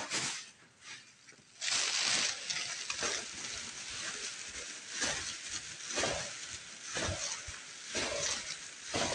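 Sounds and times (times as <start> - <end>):
quick scratchy wiping strokes: 0.2 - 9.1
loud hissing spray blast: 1.6 - 9.1.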